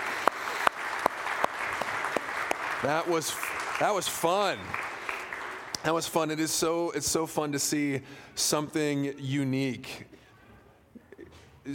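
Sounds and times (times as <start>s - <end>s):
audience applause: 0.0s - 6.4s
speech: 2.8s - 4.9s, 5.8s - 10.2s.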